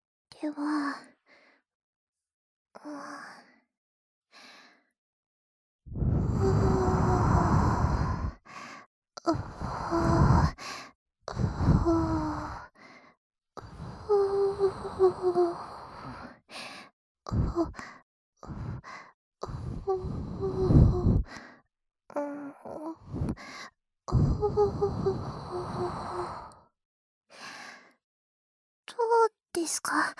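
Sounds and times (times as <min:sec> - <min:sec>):
speech: 0:00.4 - 0:01.1, 0:29.7 - 0:30.1
soft breaths blown toward the listener: 0:06.0 - 0:17.9, 0:18.5 - 0:21.6, 0:23.0 - 0:26.6.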